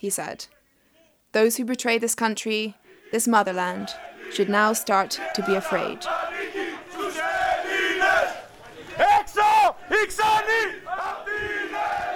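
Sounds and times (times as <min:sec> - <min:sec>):
speech: 0:00.0 - 0:00.6, 0:01.3 - 0:06.7, 0:09.9 - 0:10.8
marching party members shouting slogans: 0:02.8 - 0:12.1.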